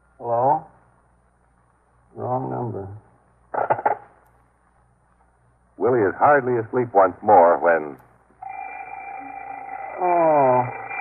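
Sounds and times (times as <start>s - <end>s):
faint hiss: 0.0s - 8.5s
speech: 2.4s - 3.0s, 6.2s - 8.1s
alarm clock ringing: 8.4s - 11.0s.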